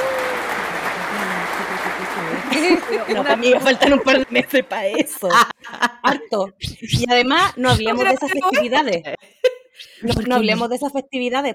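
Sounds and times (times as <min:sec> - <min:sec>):
applause: 0:00.0 - 0:04.3
laughter: 0:01.7 - 0:06.4, 0:07.4 - 0:09.4
speech: 0:02.6 - 0:09.4, 0:10.0 - 0:11.5.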